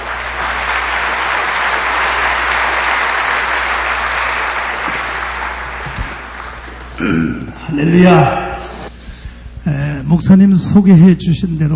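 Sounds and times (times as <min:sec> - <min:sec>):
audience applause welcoming speaker: 0:00.0 - 0:07.2
speech: 0:07.8 - 0:08.4, 0:10.3 - 0:11.7.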